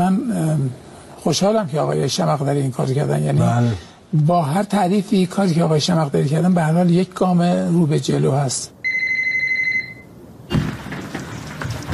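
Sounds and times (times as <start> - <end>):
speech: 0.1 - 8.8
telephone ringing: 8.8 - 10.2.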